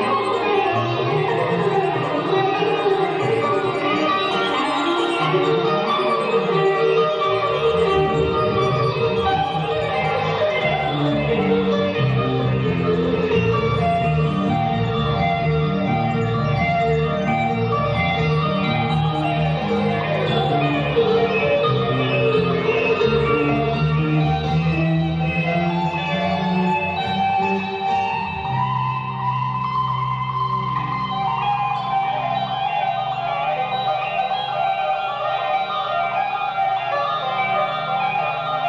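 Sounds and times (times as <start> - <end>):
guitar: 0.0 - 38.6
organ: 0.0 - 38.6.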